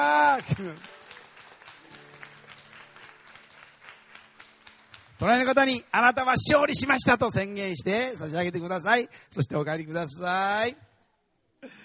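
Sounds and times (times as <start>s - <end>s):
speech: 0.0s - 1.0s, 5.2s - 10.9s
audience applause: 0.0s - 6.0s.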